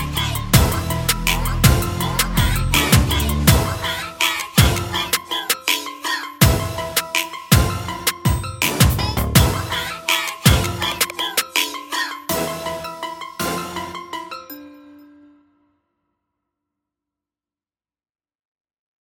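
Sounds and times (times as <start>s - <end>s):
sped-up drill music: 0.0s - 14.6s.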